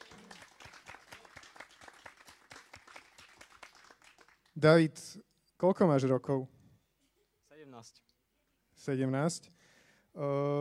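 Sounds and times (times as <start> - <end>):
audience applause: 0.0 - 4.5
speech: 4.6 - 6.6, 7.8 - 8.1, 8.8 - 9.6, 10.2 - 10.6.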